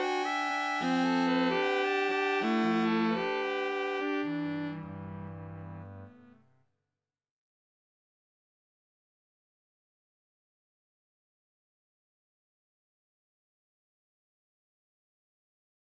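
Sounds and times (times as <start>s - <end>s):
quintet playing: 0.0s - 6.4s.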